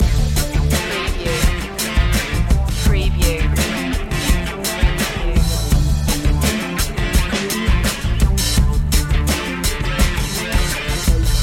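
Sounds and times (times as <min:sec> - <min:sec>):
music loop: 0:00.0 - 0:11.4.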